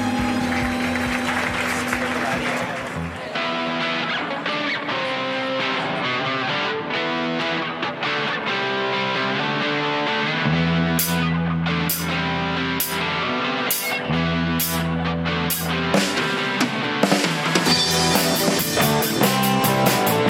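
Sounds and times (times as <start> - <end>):
audience applause and cheering: 0.0 - 3.6
live band music: 0.0 - 20.2.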